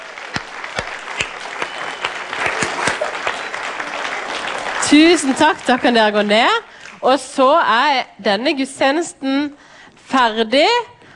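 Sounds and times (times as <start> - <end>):
audience applause: 0.0 - 7.0
speech: 4.9 - 10.9.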